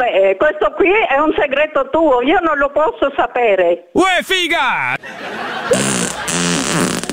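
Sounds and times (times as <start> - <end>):
speech: 0.2 - 6.9
laughter: 4.9 - 6.6
fart: 5.7 - 7.1.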